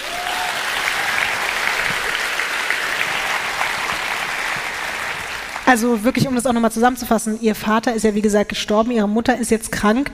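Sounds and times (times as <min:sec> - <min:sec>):
group applause: 0:00.0 - 0:06.0
speech: 0:05.7 - 0:10.1.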